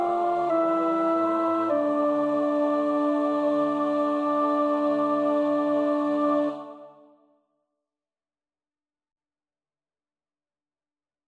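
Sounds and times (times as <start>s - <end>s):
psalm setting: 0.0s - 7.2s.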